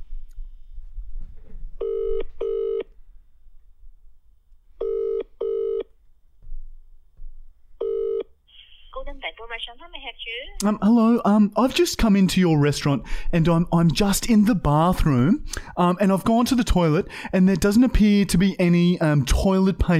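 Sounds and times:
low hum: 0.0 - 19.9
telephone call ringing out to a restaurant: 1.8 - 2.8, 4.8 - 5.8, 7.8 - 8.2
speech: 9.3 - 19.9.

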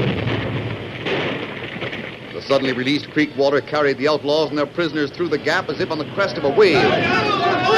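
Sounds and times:
explosion in a cavern: 0.0 - 2.7
speech: 2.4 - 7.6.

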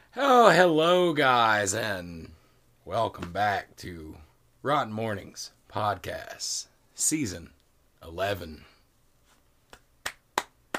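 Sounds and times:
speech: 0.2 - 2.3, 2.9 - 8.7
one person clapping alone: 9.7 - 10.7.

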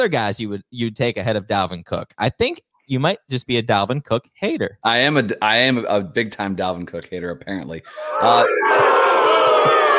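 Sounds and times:
speech: 0.0 - 9.8
rowdy crowd cheering: 8.0 - 9.9.

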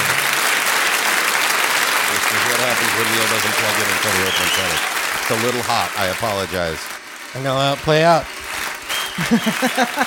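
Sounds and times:
applause sound effect: 0.0 - 10.0
speech: 3.0 - 8.3, 9.2 - 10.0
laughter: 8.9 - 10.0.

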